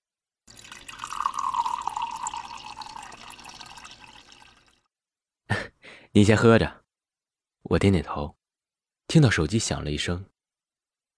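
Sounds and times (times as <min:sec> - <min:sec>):
water poured into a cup: 0:00.5 - 0:04.9
speech: 0:06.2 - 0:06.8, 0:07.7 - 0:08.4, 0:09.1 - 0:10.3.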